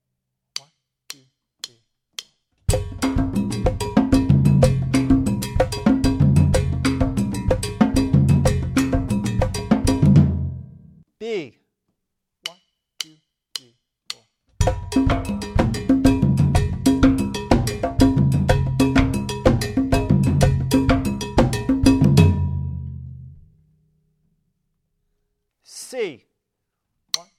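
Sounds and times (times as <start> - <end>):
Bembe rhythms on Latin percussion: 2.2 - 10.8, 14.1 - 22.9.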